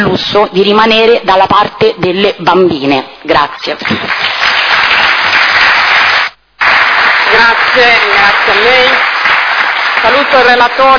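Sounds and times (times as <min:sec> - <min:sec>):
speech: 0:00.0 - 0:04.3, 0:07.3 - 0:09.1, 0:10.0 - 0:10.9
audience applause: 0:03.8 - 0:10.9.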